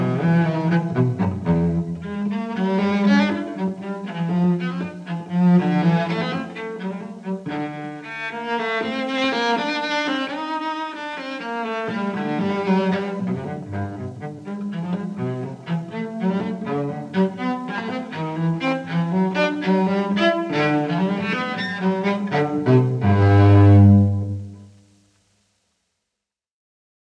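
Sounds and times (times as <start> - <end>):
live solo cello piece: 0.0 - 25.0.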